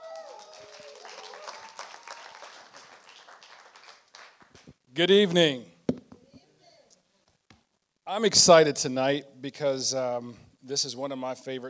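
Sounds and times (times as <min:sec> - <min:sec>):
audience applause greeting a speaker at an evening gathering: 0:00.0 - 0:04.6
speech: 0:05.0 - 0:05.7, 0:08.2 - 0:11.6.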